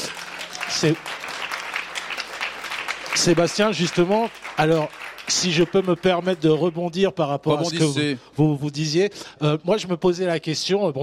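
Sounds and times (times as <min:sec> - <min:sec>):
audience applause: 0:00.0 - 0:07.0
speech: 0:00.7 - 0:01.2, 0:03.2 - 0:11.0.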